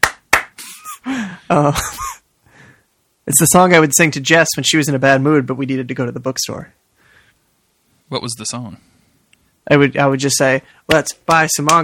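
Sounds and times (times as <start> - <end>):
light crisp hand claps: 0.0 - 0.6, 10.9 - 11.8
speech: 1.0 - 2.0, 3.3 - 6.8, 8.1 - 9.0, 9.7 - 11.8.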